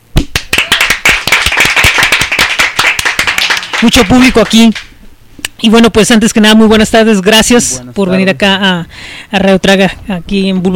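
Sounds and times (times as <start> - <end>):
studio audience applause: 0.3 - 4.8
speech: 3.8 - 5.0, 5.6 - 10.7.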